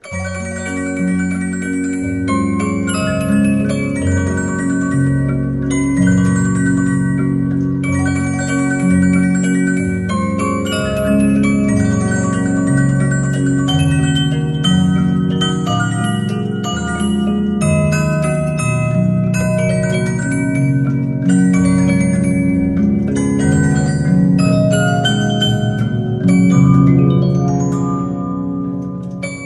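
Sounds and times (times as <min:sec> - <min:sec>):
gentle waltz: 0:00.0 - 0:29.4.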